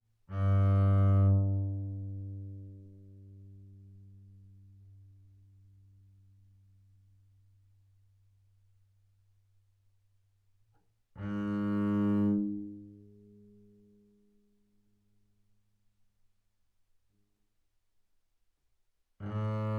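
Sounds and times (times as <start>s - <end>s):
double bass bowed fortissimo on G string: 0.3s - 4.9s, 11.2s - 13.2s, 19.2s - 19.7s.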